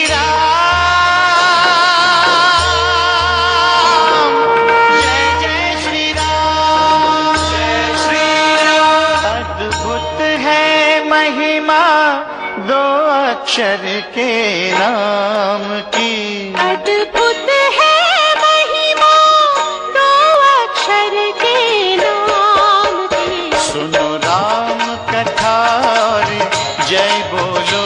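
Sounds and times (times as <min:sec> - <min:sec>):
devotional ringtone: 0:00.2 - 0:27.8.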